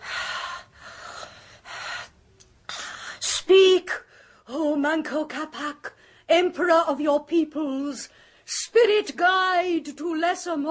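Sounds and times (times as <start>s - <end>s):
woman breathing heavily: 0.0s - 3.2s
speech: 4.5s - 10.6s.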